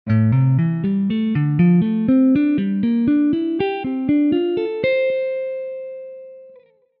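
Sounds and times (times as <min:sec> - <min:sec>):
guitar exercise: 0:00.1 - 0:06.9.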